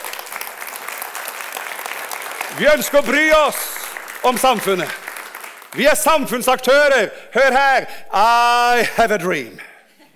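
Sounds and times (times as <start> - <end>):
audience applause: 0.0 - 6.3
speech: 2.5 - 5.0, 5.7 - 9.7.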